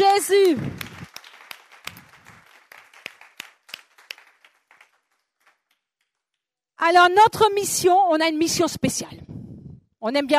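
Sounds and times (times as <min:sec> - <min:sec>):
audience applauding: 0:00.0 - 0:06.2
speech: 0:00.3 - 0:00.9, 0:06.8 - 0:09.3, 0:10.0 - 0:10.3.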